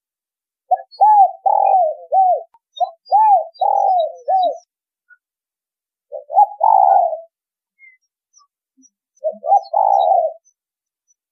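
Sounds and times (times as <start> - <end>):
spotted dove cooing: 0.7 - 4.7, 6.1 - 8.0, 9.2 - 10.5.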